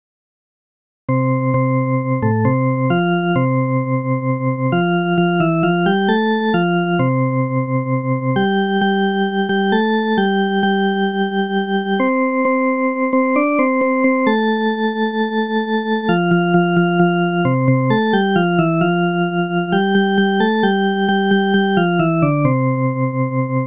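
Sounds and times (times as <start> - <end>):
melody: 1.1 - 23.5.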